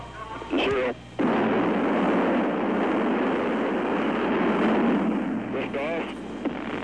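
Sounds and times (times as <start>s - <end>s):
Redstone rocket liftoff: 0.5s - 6.8s.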